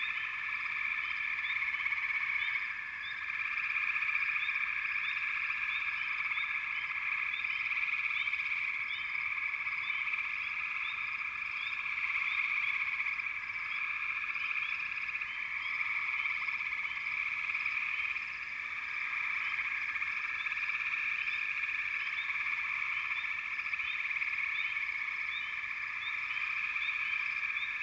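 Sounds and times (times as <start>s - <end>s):
frog chorus: 0.0s - 27.8s.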